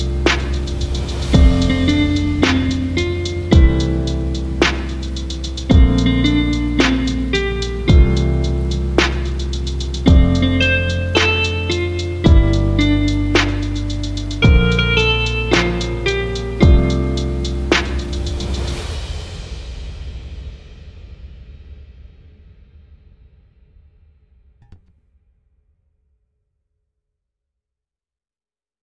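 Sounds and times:
lo-fi instrumental music: 0.0 - 18.2.

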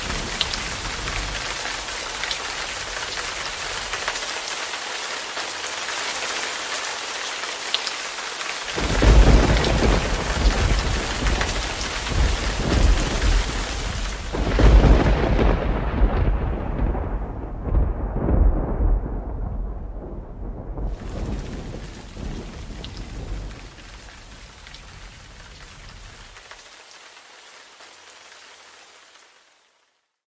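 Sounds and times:
thunder and lightning: 0.0 - 4.1, 8.7 - 26.2.

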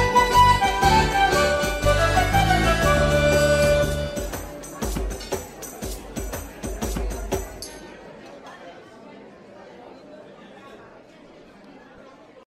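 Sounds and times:
medieval tavern music: 0.0 - 6.6.

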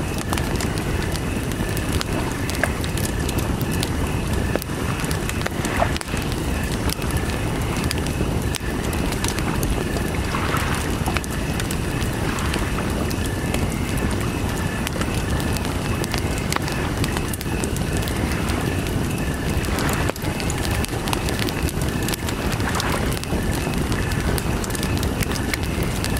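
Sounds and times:
campfire by the lake: 0.0 - 26.1
crickets chirping: 0.0 - 26.1
lake water: 0.0 - 26.1.

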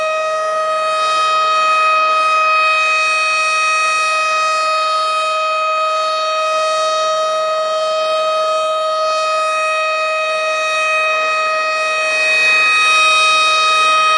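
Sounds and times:
tornado siren: 0.0 - 14.1.

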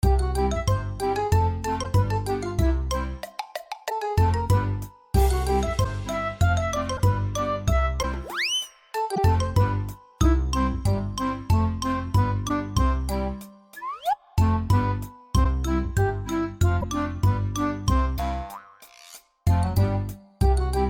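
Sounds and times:
funny cartoon music: 0.0 - 20.8.

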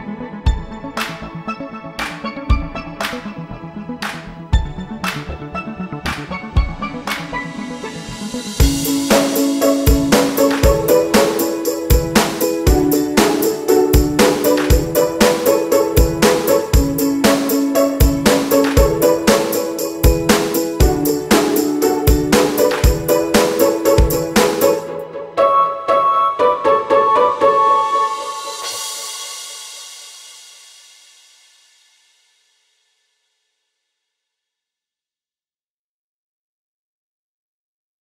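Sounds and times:
background music: 0.0 - 30.4.

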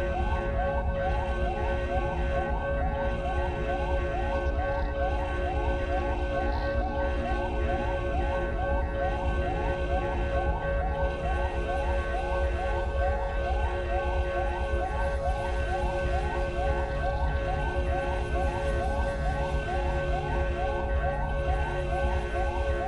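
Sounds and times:
siren alarm ambience: 0.0 - 22.8.

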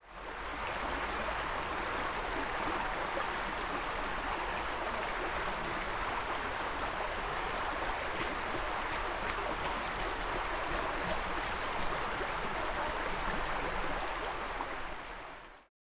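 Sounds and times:
stream: 0.0 - 15.7
running footsteps: 7.8 - 13.6.

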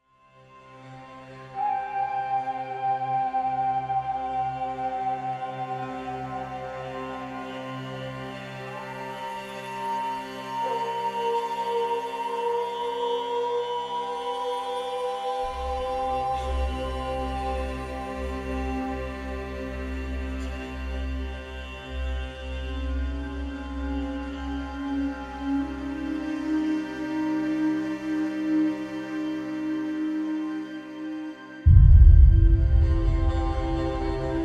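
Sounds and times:
ambient music: 0.0 - 34.4.

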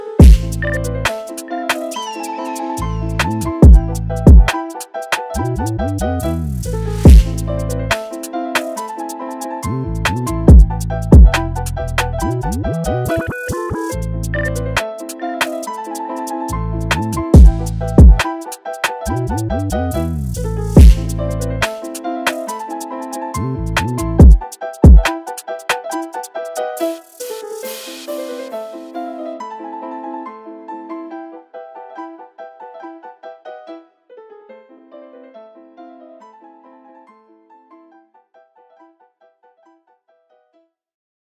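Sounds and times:
drill remix of a classical piece: 0.0 - 28.8.

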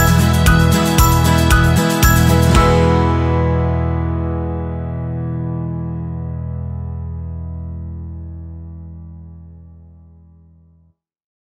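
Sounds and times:
cheerful acoustic music: 0.0 - 5.8.

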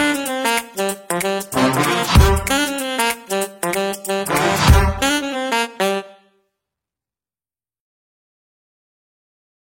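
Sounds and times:
happy fun background music for videos: 0.0 - 6.0.

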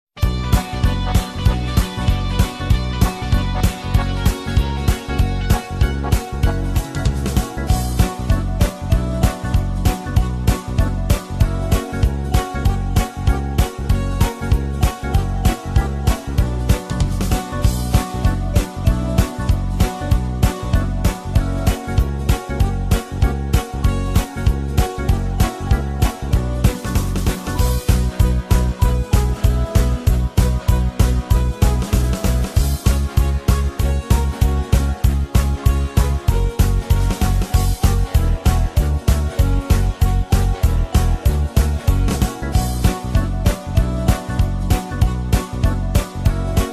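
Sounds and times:
karaoke instrumental music: 0.1 - 46.7.

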